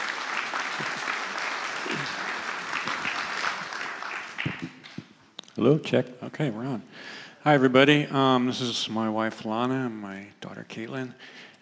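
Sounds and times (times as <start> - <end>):
audience applause: 0.0 - 5.1
speech: 5.6 - 11.5.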